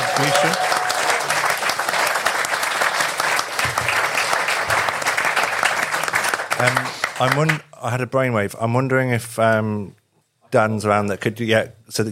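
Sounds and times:
audience round of applause: 0:00.0 - 0:07.6
speech: 0:00.2 - 0:00.7, 0:06.6 - 0:12.1.

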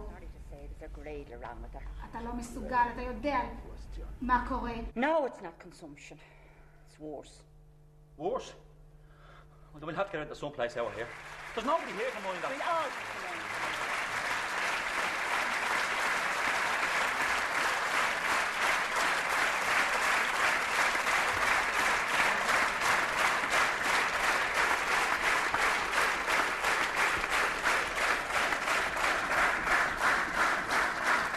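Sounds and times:
speech: 0:00.8 - 0:07.5, 0:08.2 - 0:08.7, 0:09.7 - 0:13.3
theatre audience slow hand clap: 0:10.8 - 0:31.3.

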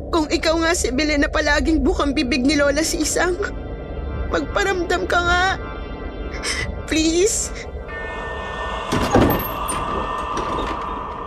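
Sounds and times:
speech: 0:00.2 - 0:03.6, 0:04.3 - 0:05.7, 0:06.4 - 0:07.7
door opening with a brief scraping sliding rush: 0:08.4 - 0:11.2.

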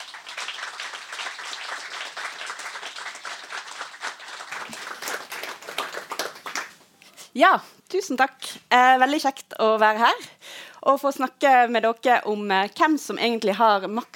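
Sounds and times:
audience applause: 0:00.0 - 0:06.8
speech: 0:07.4 - 0:14.1.

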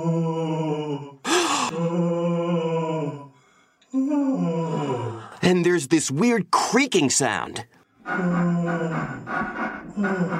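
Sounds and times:
eerie moaning: 0:00.0 - 0:05.4, 0:08.0 - 0:10.3
speech: 0:05.5 - 0:08.6, 0:10.0 - 0:10.3.

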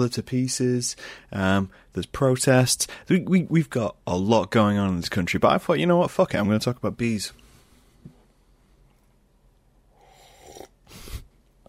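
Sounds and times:
speech: 0:00.0 - 0:07.4
person slurping a drink: 0:09.9 - 0:11.3.

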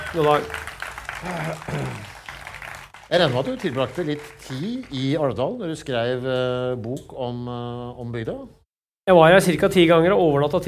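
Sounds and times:
audience applause: 0:00.0 - 0:05.1
speech: 0:00.1 - 0:00.6, 0:01.2 - 0:02.1, 0:03.1 - 0:10.6.

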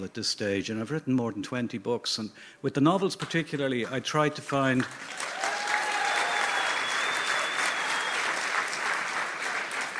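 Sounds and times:
speech: 0:00.0 - 0:05.4
audience applause: 0:04.8 - 0:09.9.

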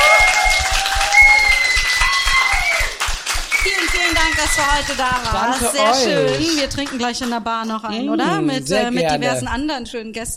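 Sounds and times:
audience applause: 0:00.0 - 0:07.4
speech: 0:04.6 - 0:10.3.

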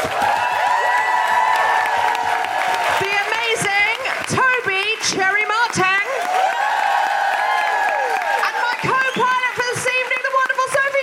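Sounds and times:
audience whoops and shouts: 0:00.0 - 0:03.4, 0:06.1 - 0:10.1
audience at a live comedy show clapping: 0:00.0 - 0:11.0.

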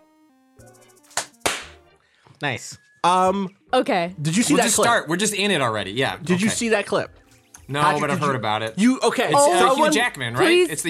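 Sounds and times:
single hand clap for recording sync: 0:01.1 - 0:01.8
speech: 0:02.4 - 0:10.8.

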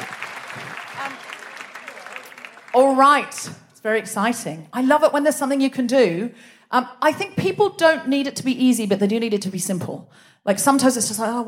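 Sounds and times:
audience applause: 0:00.0 - 0:03.4
speech: 0:02.8 - 0:11.4.

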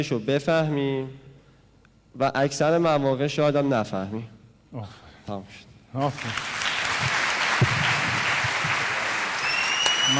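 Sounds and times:
speech: 0:00.0 - 0:01.2, 0:02.2 - 0:07.7
audience clapping: 0:06.0 - 0:10.1.

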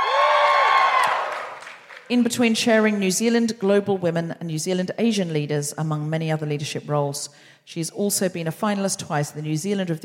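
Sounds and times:
shrill whoops and yells: 0:00.0 - 0:01.4
live audience cheering loudly: 0:00.0 - 0:02.1
speech: 0:02.1 - 0:10.0.

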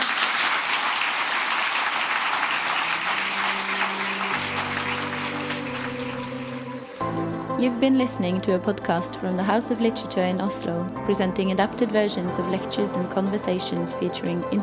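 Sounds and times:
audience applause: 0:00.0 - 0:07.2
speech: 0:07.6 - 0:14.6.

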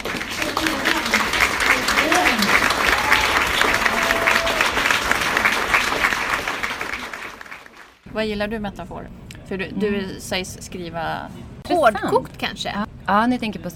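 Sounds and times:
faint voices and cheers: 0:00.0 - 0:05.5
small group applause: 0:00.0 - 0:08.0
speech: 0:08.2 - 0:13.7.

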